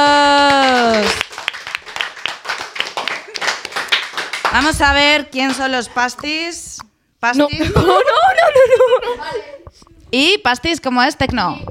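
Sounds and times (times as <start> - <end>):
audience applause: 0.4 - 4.7
speech: 4.6 - 9.5, 10.1 - 11.6
laughter: 7.6 - 9.6.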